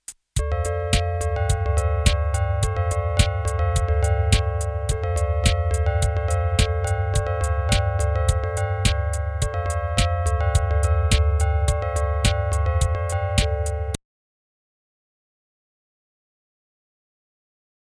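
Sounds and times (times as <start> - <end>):
failure bells ringing: 0.4 - 14.0.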